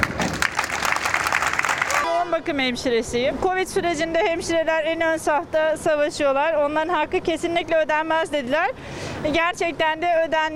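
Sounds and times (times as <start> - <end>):
crowd applause as protest: 0.0 - 2.1
speech: 2.4 - 10.5.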